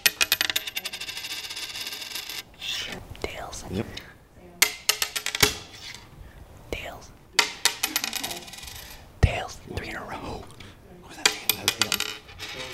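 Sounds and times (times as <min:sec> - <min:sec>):
coin flipped, metallic ringing: 0:00.0 - 0:02.4, 0:04.6 - 0:06.0, 0:07.4 - 0:09.0, 0:11.2 - 0:12.7
hushed whispering voices: 0:02.4 - 0:04.7, 0:05.7 - 0:12.7
speech: 0:03.6 - 0:04.1.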